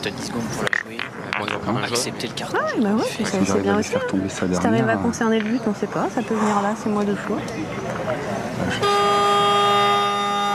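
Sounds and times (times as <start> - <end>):
speech: 0.0 - 9.0
voices and chatter: 0.0 - 10.5
loud game buzzer marking end of minute: 8.8 - 10.5.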